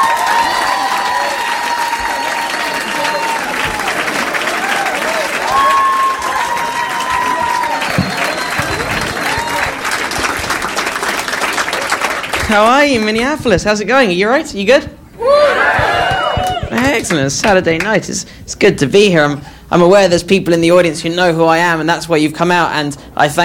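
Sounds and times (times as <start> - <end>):
shouted voices: 0.0 - 9.8, 15.2 - 16.8
crowd whooping and cheering: 0.0 - 11.9, 15.2 - 17.1
audience applause: 0.0 - 13.0, 15.3 - 17.3
speech: 12.5 - 15.4, 16.8 - 23.4.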